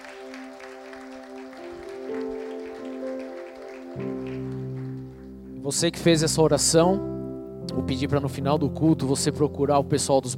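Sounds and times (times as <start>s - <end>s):
audience applauding: 0.0s - 5.6s
speech: 5.7s - 7.2s, 7.8s - 10.3s.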